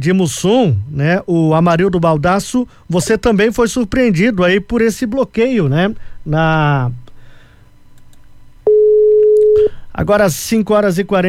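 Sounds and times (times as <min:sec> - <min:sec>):
speech: 0:00.0 - 0:07.0, 0:10.0 - 0:11.2
busy signal after a dropped phone call: 0:08.7 - 0:09.8.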